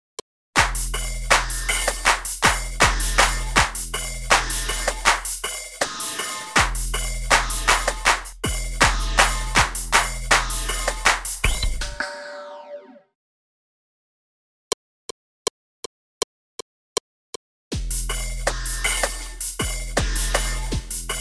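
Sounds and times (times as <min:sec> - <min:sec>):
street percussion beat: 0:00.6 - 0:12.0, 0:17.8 - 0:21.2.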